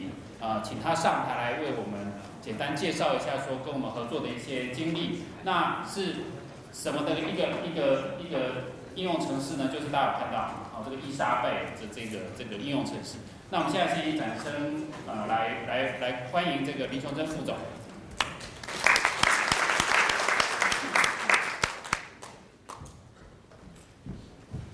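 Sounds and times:
man speaking over a hall microphone: 0.0 - 17.9
audience clapping: 18.2 - 22.8.

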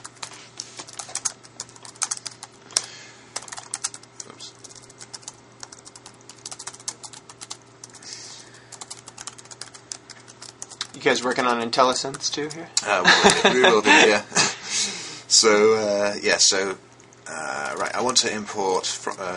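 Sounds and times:
typing IronPython code on a computer keyboard: 0.0 - 8.0, 8.7 - 12.6, 17.0 - 18.2
faint steady hum: 0.0 - 19.3
speech: 11.0 - 14.5, 15.4 - 16.9, 18.0 - 19.3
laughter: 12.9 - 14.8.

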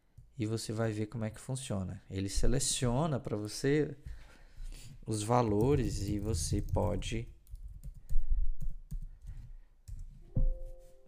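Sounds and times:
speech: 0.4 - 4.2, 5.0 - 7.4
typing a password on a computer keyboard: 5.5 - 10.1.

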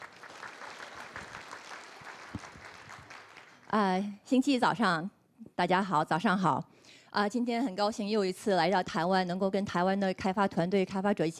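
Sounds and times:
audience applause: 0.0 - 3.7
speech: 3.7 - 11.3.

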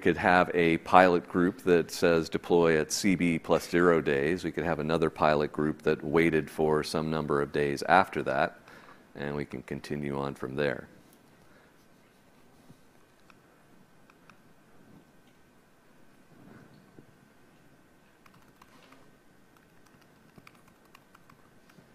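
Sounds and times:
speech: 0.0 - 8.6, 9.2 - 10.9
computer keyboard typing: 18.2 - 21.8.

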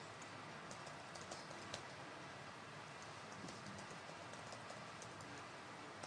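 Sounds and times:
typing a password on a keyboard: 0.2 - 1.9, 3.0 - 6.0.

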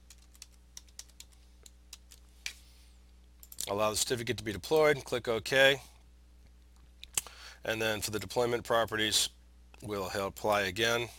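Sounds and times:
typing a password on a computer keyboard: 0.0 - 2.2
speech: 3.7 - 5.9, 7.7 - 11.1.

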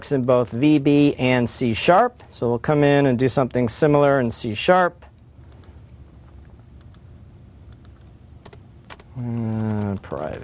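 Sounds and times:
speech: 0.0 - 5.1, 9.2 - 10.4
computer keyboard keystrokes typing code: 7.7 - 10.4.

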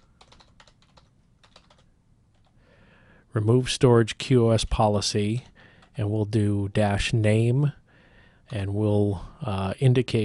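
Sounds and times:
keystrokes on a computer keyboard as a command is typed: 0.0 - 2.6
speech: 3.4 - 7.8, 8.5 - 10.2.

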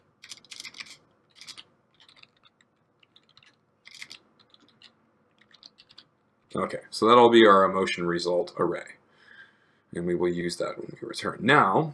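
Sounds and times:
typing on a computer keyboard: 0.2 - 6.1
speech: 6.5 - 9.0, 10.0 - 11.9.

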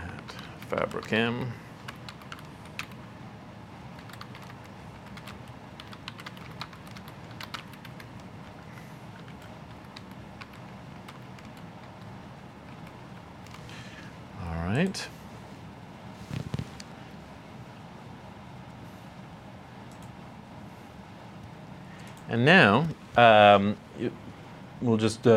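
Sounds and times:
low steady hum: 0.0 - 25.3
speech: 0.7 - 1.7, 22.3 - 24.2, 24.8 - 25.3
typing on a computer keyboard: 1.8 - 3.0, 4.0 - 8.6, 9.2 - 13.6.

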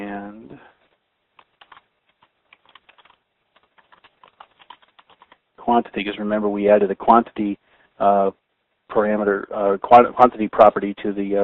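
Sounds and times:
typing on a computer keyboard during coding work: 1.4 - 5.4
speech: 5.7 - 11.4.

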